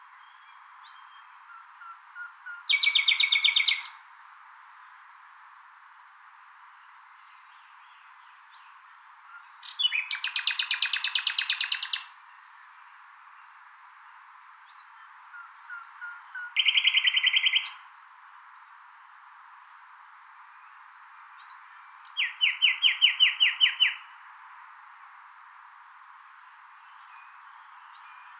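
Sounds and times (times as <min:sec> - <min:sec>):
Common nightingale singing: 0:00.0 - 0:04.9, 0:06.4 - 0:18.1, 0:20.1 - 0:28.3.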